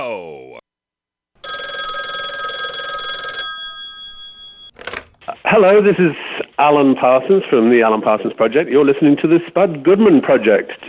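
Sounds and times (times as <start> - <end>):
loud old-style telephone bell ringing: 1.4 - 4.8
speech: 5.5 - 10.8.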